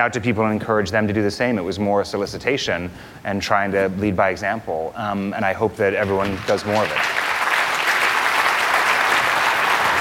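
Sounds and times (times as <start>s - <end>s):
speech: 0.0s - 7.2s
audience applause: 6.0s - 9.9s.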